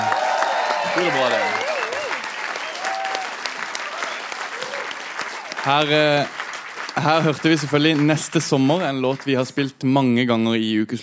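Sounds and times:
audience applause: 0.0 - 9.5
speech: 1.0 - 1.6, 5.6 - 6.4, 7.0 - 11.0.

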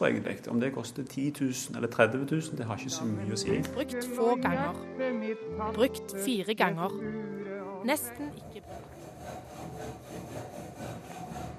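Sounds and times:
speech: 0.0 - 10.6
filing bicycle frames at Sandnes sykkelfabrikk: 8.1 - 11.5.

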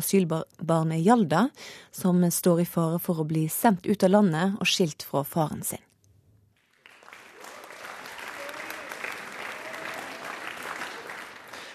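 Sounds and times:
speech: 0.0 - 5.9
audience applause at film screening in Tromsø: 6.6 - 11.7.

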